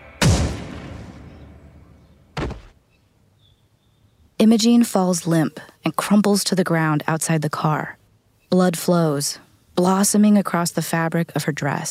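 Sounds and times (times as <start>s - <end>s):
gunshot fired at close range: 0.0s - 1.7s, 2.4s - 2.8s
speech: 4.4s - 11.8s.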